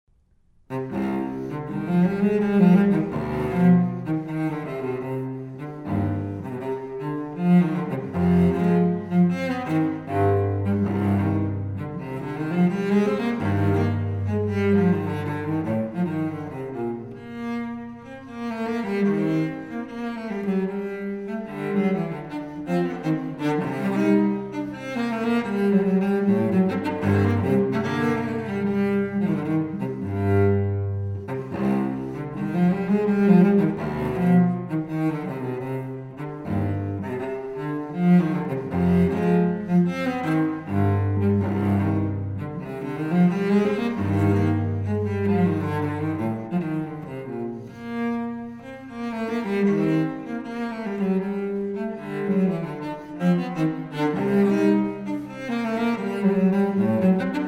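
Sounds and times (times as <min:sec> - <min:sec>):
baroque dance piece: 0:00.6 - 0:57.4.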